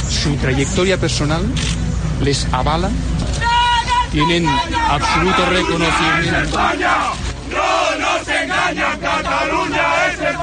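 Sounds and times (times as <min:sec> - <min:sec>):
speech: 0:00.2 - 0:03.4, 0:04.1 - 0:07.7
Hogar Social Madrid protesters shouting: 0:03.3 - 0:10.4.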